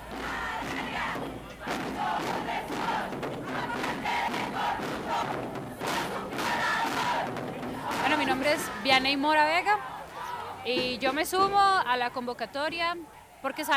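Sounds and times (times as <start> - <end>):
thuds: 0.0 - 9.2
large crowd of women chanting in unison: 0.0 - 13.7
speech: 8.2 - 9.9, 10.6 - 13.7.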